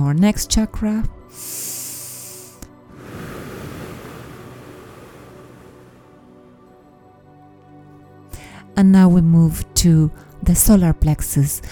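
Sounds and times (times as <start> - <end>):
speech: 0.0 - 1.7, 8.8 - 11.7
breathing in through the nose and out through the mouth during a chakra meditation: 1.3 - 3.6.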